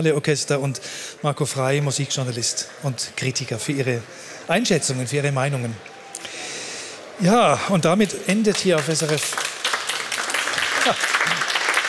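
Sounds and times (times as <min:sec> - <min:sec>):
speech: 0:00.0 - 0:06.0, 0:07.2 - 0:09.5, 0:10.8 - 0:11.1
audience applauding at the close of a summer orchestra concert: 0:08.0 - 0:11.8.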